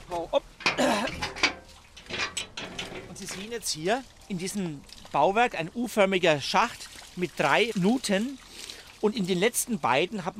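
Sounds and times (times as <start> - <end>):
lid being opened on a carp pond drain structure: 0.6 - 3.6
speech: 3.5 - 8.4, 9.0 - 10.3.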